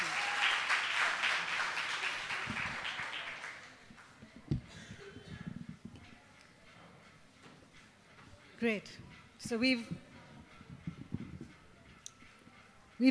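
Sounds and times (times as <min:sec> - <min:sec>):
audience applause welcoming a speaker: 0:00.0 - 0:04.2
speech: 0:08.6 - 0:10.0.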